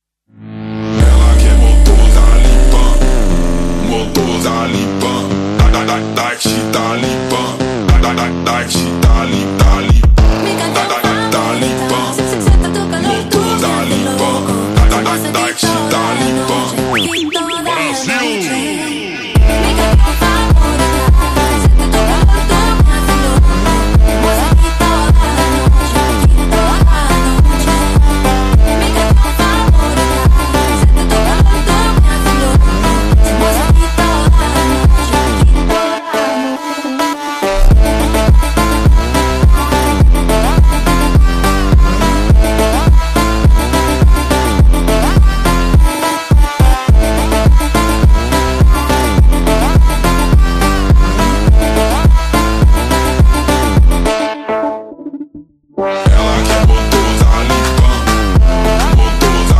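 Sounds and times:
slowed baile funk music: 0.4 - 18.1, 19.4 - 36.4, 37.4 - 59.5.

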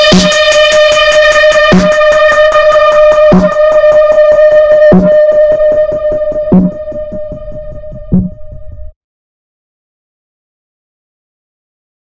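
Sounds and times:
phonk music: 0.0 - 8.8.

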